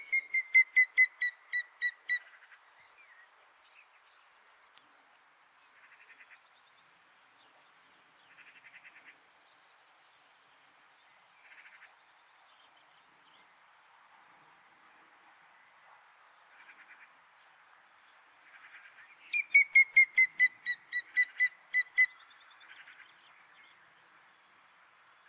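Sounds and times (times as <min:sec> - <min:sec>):
grey-headed woodpecker calling: 0:00.0 - 0:02.2, 0:19.3 - 0:22.2.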